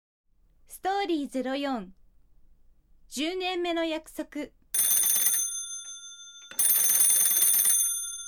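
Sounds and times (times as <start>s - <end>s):
speech: 0.7s - 2.0s, 3.1s - 4.6s
telephone ringing: 4.8s - 8.2s.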